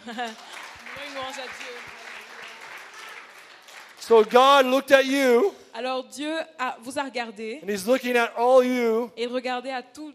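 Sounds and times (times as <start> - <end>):
speech: 0.0 - 2.1, 4.0 - 10.1
audience clapping: 0.0 - 5.5.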